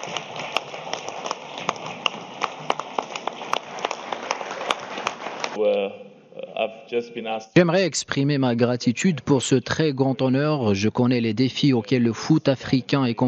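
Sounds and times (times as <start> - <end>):
crowd cheering and applauding: 0.0 - 5.6
speech: 5.6 - 6.0, 6.6 - 13.2.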